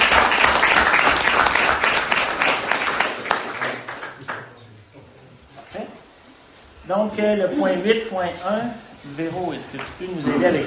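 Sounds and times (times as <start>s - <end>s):
audience applause: 0.0s - 4.6s
speech: 6.9s - 10.6s.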